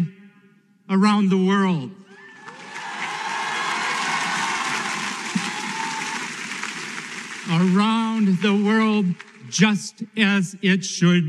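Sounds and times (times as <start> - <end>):
speech: 0.9 - 2.0, 7.5 - 11.2
standing ovation after a Harvard commencement address line: 2.1 - 9.5.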